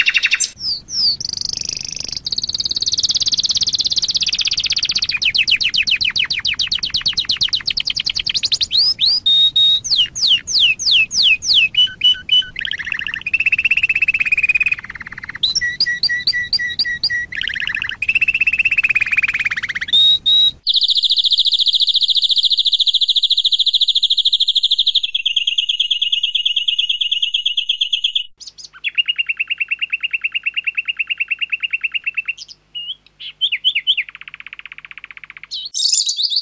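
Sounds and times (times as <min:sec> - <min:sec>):
canary singing: 0:00.0 - 0:36.4
lovebird chirping: 0:00.0 - 0:36.4.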